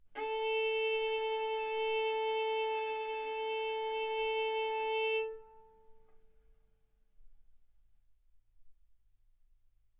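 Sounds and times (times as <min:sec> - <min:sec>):
violin bowed arco notes: 0:00.2 - 0:06.2.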